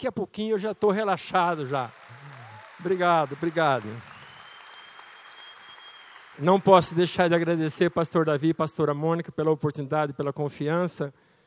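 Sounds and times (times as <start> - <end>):
speech: 0.0 - 2.0, 2.8 - 4.1, 6.4 - 11.2
audience applause: 1.3 - 8.4.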